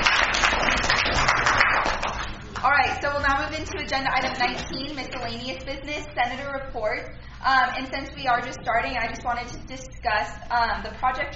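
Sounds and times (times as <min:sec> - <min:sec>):
applause from attendees of a senate meeting: 0:00.0 - 0:02.6
speech: 0:03.5 - 0:11.3.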